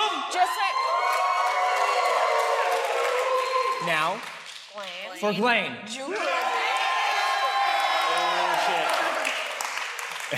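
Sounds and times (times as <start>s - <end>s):
audience cheering and shouting at a live show at DragonCon 2019: 0.3s - 4.0s, 6.1s - 9.7s
speech: 3.8s - 6.4s.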